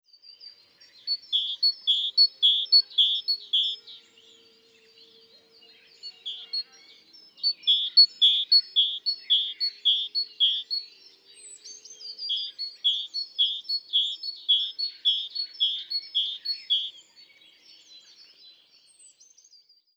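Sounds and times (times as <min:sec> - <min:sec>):
great tit calling: 0:01.1 - 0:03.9, 0:07.4 - 0:10.9, 0:12.4 - 0:16.9.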